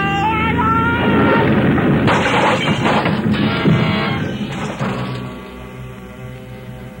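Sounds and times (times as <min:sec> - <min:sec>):
aircraft crash-landing: 0:01.0 - 0:05.6.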